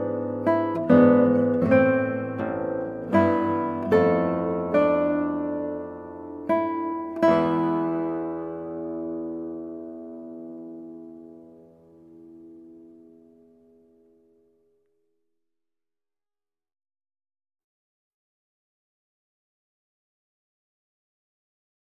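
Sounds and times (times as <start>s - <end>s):
slow guitar piece: 0.0s - 15.0s.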